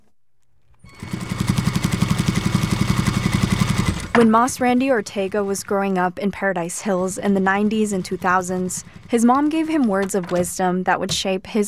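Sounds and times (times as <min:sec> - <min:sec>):
industrial sewing machines at Norma's Apparel clothing workshop in National City: 0:00.9 - 0:06.1, 0:06.8 - 0:10.6
speech: 0:04.2 - 0:11.6.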